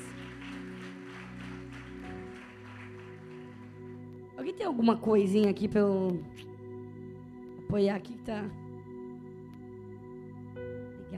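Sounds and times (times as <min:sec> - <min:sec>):
audience applauding: 0:00.0 - 0:04.0
sustained keyboard or organ chords: 0:00.0 - 0:11.1
speech: 0:04.4 - 0:06.5, 0:07.7 - 0:08.6.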